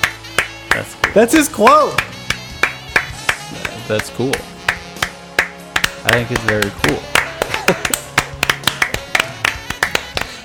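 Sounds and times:
two people clapping: 0:00.0 - 0:10.4
speech: 0:00.8 - 0:02.1, 0:03.9 - 0:04.5, 0:06.1 - 0:07.1, 0:07.7 - 0:08.0
laughter: 0:07.2 - 0:08.3.

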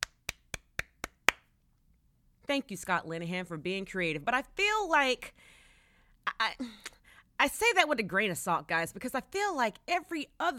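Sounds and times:
hand claps: 0:00.0 - 0:01.5
speech: 0:02.5 - 0:05.6, 0:06.3 - 0:10.5.

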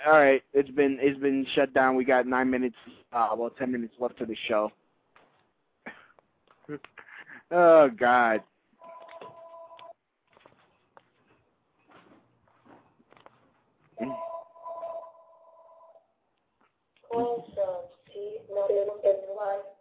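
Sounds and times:
speech: 0:00.0 - 0:04.8, 0:06.7 - 0:08.5, 0:14.0 - 0:14.2, 0:17.1 - 0:17.9, 0:18.5 - 0:19.7
telephone ringing: 0:08.8 - 0:10.0, 0:14.0 - 0:16.0.

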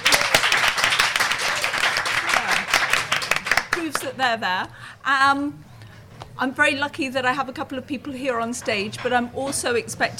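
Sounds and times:
audience clapping: 0:00.0 - 0:04.2
speech: 0:04.0 - 0:05.7, 0:06.4 - 0:10.1.

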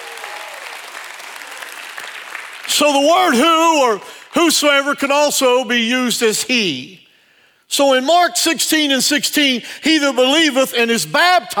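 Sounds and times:
audience clapping hands: 0:00.0 - 0:04.4
speech: 0:02.7 - 0:07.1, 0:07.7 - 0:11.5.

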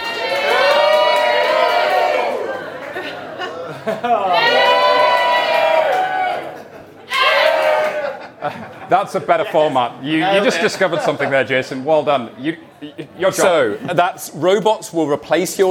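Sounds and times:
crowd cheering: 0:00.0 - 0:08.7
laughter: 0:02.3 - 0:04.7, 0:06.4 - 0:11.8
speech: 0:08.9 - 0:15.6.

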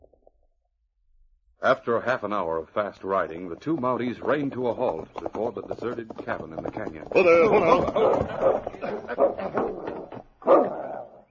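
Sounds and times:
speech: 0:01.6 - 0:09.9
laughter: 0:07.2 - 0:09.9
dog barking, growling and whining: 0:08.0 - 0:11.2.

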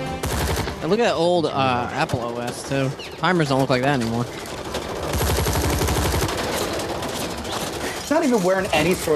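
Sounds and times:
sustained gunfire: 0:00.2 - 0:01.0, 0:04.5 - 0:07.9
speech: 0:00.8 - 0:04.6, 0:08.1 - 0:09.1.

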